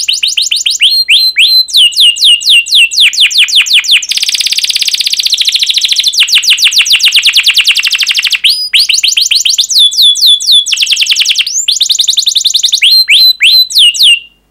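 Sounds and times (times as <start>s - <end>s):
canary singing fast trills: 0.0s - 14.4s.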